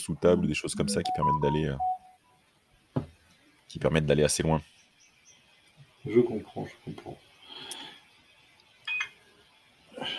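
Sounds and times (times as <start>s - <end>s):
speech: 0.0s - 2.0s, 3.7s - 4.7s, 6.0s - 7.8s
mobile phone not set to silent mode ringing: 0.8s - 2.2s.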